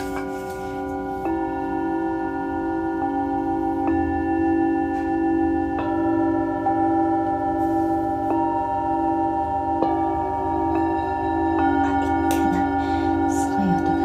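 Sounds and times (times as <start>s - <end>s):
singing bowls ringing: 0.0s - 14.0s
steady low hum: 0.0s - 14.0s.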